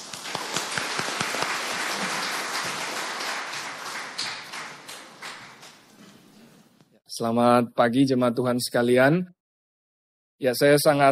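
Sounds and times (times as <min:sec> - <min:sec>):
audience applause: 0:00.0 - 0:06.0
speech: 0:07.2 - 0:09.4, 0:10.4 - 0:11.0.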